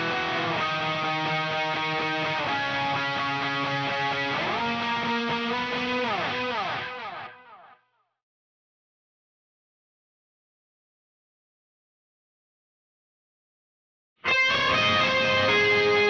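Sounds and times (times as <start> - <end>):
bass guitar: 0.0 - 6.7, 14.3 - 16.0.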